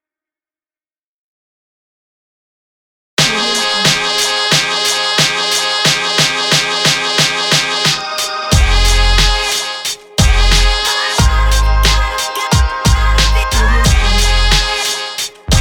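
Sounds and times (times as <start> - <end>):
upbeat hip hop music: 3.2 - 15.5.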